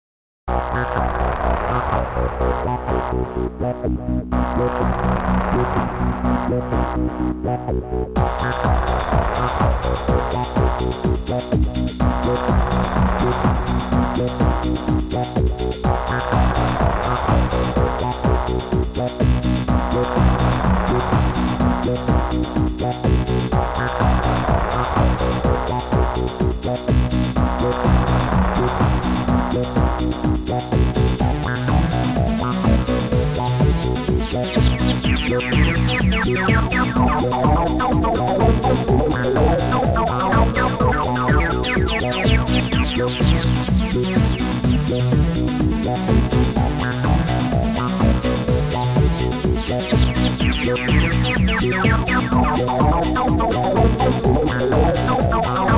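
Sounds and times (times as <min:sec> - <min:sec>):
music: 0:00.5 - 0:55.7.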